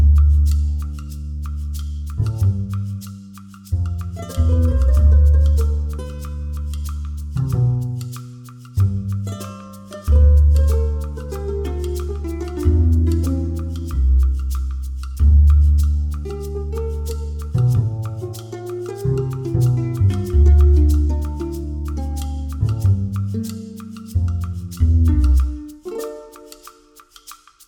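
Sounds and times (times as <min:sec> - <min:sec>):
percussive forest music: 0:00.0 - 0:27.6.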